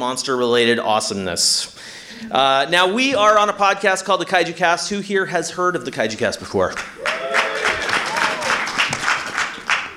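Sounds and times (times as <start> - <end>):
speech: 0.0 - 7.0
voices whooping: 7.0 - 8.8
audience applause: 7.0 - 9.9.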